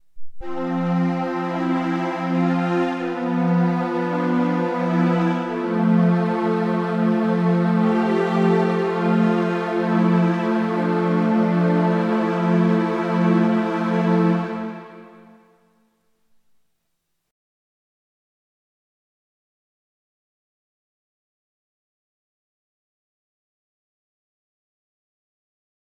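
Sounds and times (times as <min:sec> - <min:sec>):
strings: 0:00.4 - 0:15.5.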